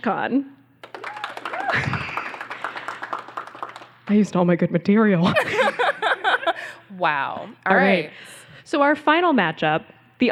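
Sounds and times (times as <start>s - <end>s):
speech: 0.0s - 0.6s, 1.7s - 2.1s, 4.1s - 5.5s, 6.9s - 10.3s
audience clapping to vote: 0.8s - 4.3s
laughter: 1.6s - 3.0s, 5.2s - 6.9s.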